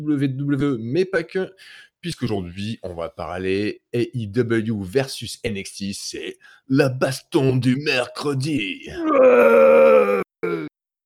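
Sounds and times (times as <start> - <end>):
speech: 0.0 - 10.7
man roaring, imitating a wild beast: 8.9 - 10.7
man growling: 8.9 - 10.8.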